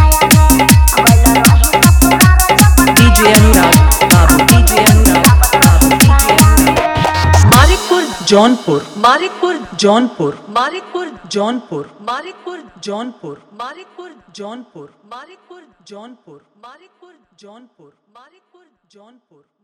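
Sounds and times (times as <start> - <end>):
Bhojpuri dholak bass dance mix: 0.0 - 10.4.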